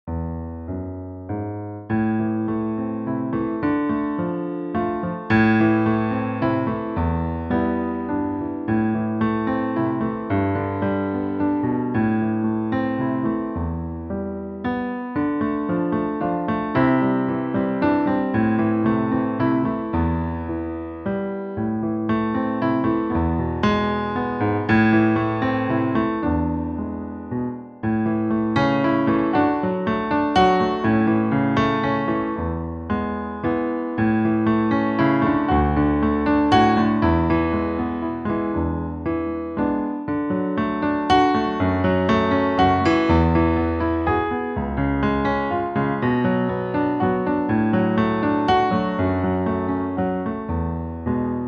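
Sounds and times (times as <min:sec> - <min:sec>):
piano: 0:00.0 - 0:51.4.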